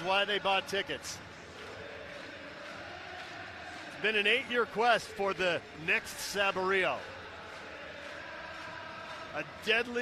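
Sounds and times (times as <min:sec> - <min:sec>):
speech: 0:00.0 - 0:01.3, 0:04.0 - 0:07.2, 0:09.3 - 0:10.0
sellout stadium crowd singing: 0:00.0 - 0:10.0.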